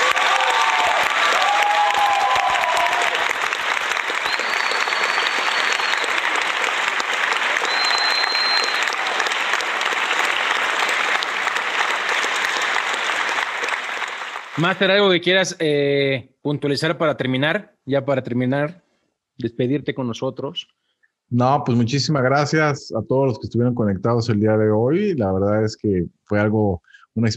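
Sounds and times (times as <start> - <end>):
faint whistles and cheers: 0.0 - 14.7
audience applause: 0.0 - 15.1
speech: 14.6 - 18.8, 19.4 - 27.3.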